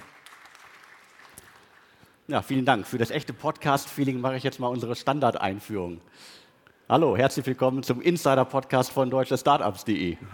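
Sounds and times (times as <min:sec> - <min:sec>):
audience applause: 0:00.0 - 0:02.0
speech: 0:02.3 - 0:10.3.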